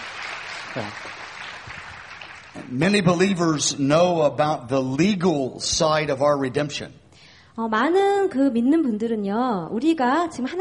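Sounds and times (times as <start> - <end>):
congregation applauding an interpreter at a church service: 0.0 - 2.7
speech: 0.7 - 1.4, 2.6 - 7.0, 7.6 - 10.5.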